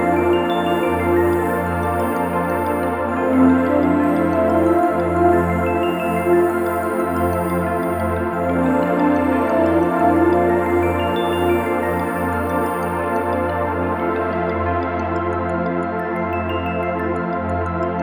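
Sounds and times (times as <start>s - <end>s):
instrumental music: 0.0s - 17.9s.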